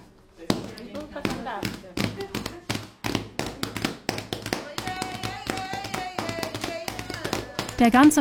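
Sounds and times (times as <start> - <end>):
rhythmic hand clapping: 0.5 - 8.1
several voices singing along over the clapping: 4.5 - 7.8.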